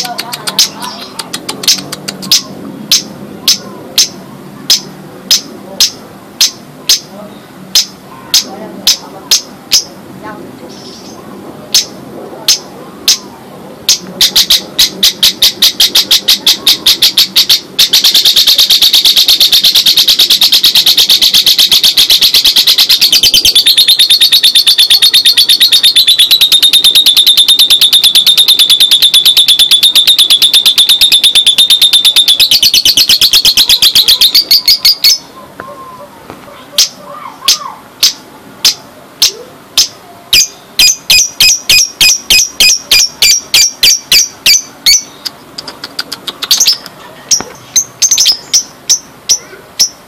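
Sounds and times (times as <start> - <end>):
Lovebird chirps and trills: 0.0 - 10.0, 10.6 - 13.3, 13.9 - 36.1, 36.7 - 50.0.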